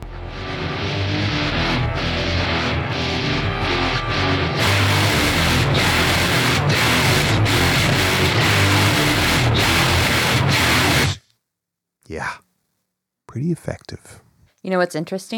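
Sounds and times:
heavily distorted synthesizer: 0.0 - 11.2
speech: 13.4 - 15.3.

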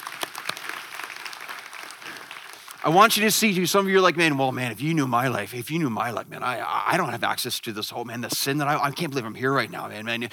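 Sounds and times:
audience applause: 0.0 - 3.6
speech: 2.8 - 10.3.

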